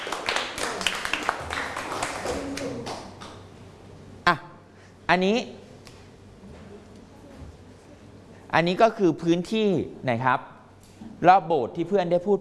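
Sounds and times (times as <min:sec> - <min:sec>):
children clapping for a classmate: 0:00.0 - 0:03.5
speech: 0:04.3 - 0:04.5, 0:05.1 - 0:05.6, 0:08.5 - 0:10.5, 0:11.2 - 0:12.4.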